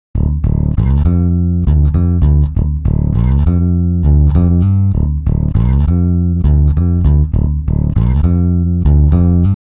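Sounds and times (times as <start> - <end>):
bass: 0.1 - 9.6.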